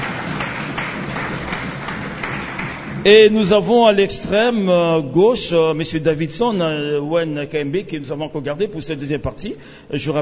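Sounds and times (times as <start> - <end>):
audience applause welcoming a guest: 0.0 - 3.1
speech: 3.0 - 10.2.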